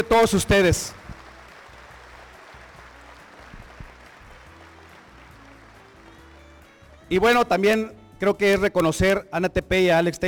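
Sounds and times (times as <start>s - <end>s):
speech: 0.0s - 1.0s, 7.1s - 10.2s
audience applause: 0.0s - 6.8s.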